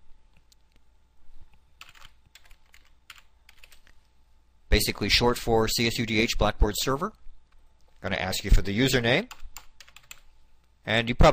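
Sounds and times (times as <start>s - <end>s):
typing on a computer keyboard: 1.8s - 4.0s, 9.3s - 10.3s
speech: 4.8s - 7.2s, 8.0s - 9.4s, 10.9s - 11.3s.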